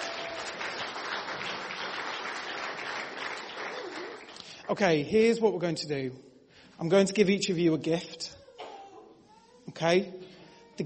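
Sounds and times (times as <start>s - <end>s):
audience applause: 0.0s - 4.5s
speech: 4.7s - 8.4s, 9.8s - 10.2s.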